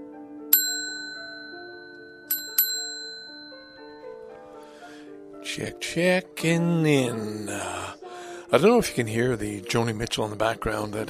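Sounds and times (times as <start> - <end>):
bright bell-like ding sound effect: 0.5 - 4.2
speech: 5.6 - 11.0.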